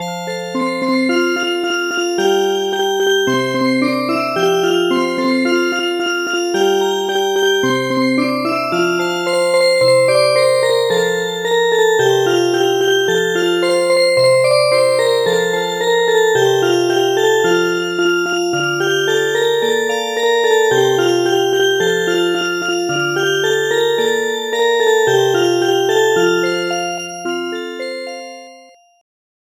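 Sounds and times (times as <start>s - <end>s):
music box: 0.0s - 29.0s.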